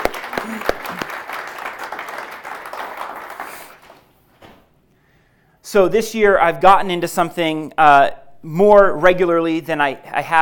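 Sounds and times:
gathering applauding to welcome a guest after a prayer: 0:00.0 - 0:04.1
speech: 0:05.7 - 0:10.3.

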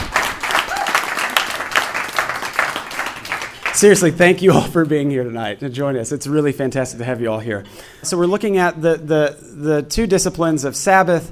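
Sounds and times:
audience round of applause: 0:00.0 - 0:03.9
speech: 0:03.8 - 0:11.3.

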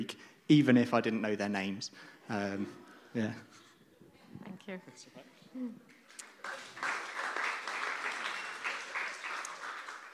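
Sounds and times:
speech: 0:00.0 - 0:03.6, 0:04.4 - 0:06.6
audience applause: 0:06.2 - 0:10.1.

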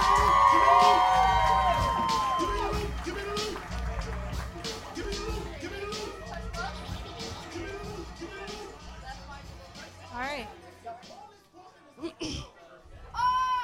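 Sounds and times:
crowd clapping: 0:00.0 - 0:06.8
crowd whooping and shouting: 0:00.0 - 0:08.4, 0:13.1 - 0:13.6.

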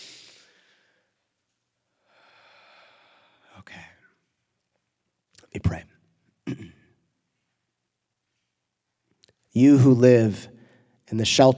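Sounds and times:
deep breath from someone with a cold: 0:01.9 - 0:03.6, 0:10.5 - 0:11.0
speech: 0:05.5 - 0:06.8, 0:09.6 - 0:10.5, 0:11.1 - 0:11.5.

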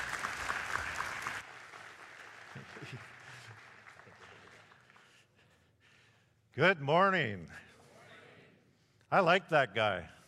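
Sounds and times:
audience applause welcoming a speaker at a gathering: 0:00.0 - 0:05.2
speech: 0:06.6 - 0:07.6, 0:09.1 - 0:10.2.

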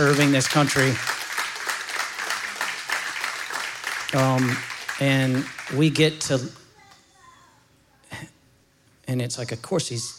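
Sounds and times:
speech: 0:00.0 - 0:01.2, 0:04.1 - 0:06.6, 0:09.1 - 0:10.1
audience applause: 0:00.0 - 0:06.3.

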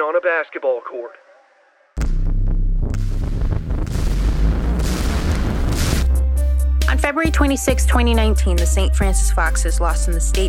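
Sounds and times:
speech: 0:00.0 - 0:01.2, 0:06.9 - 0:10.4
explosion boom: 0:02.0 - 0:06.7
crackling debris noise: 0:02.9 - 0:06.2.

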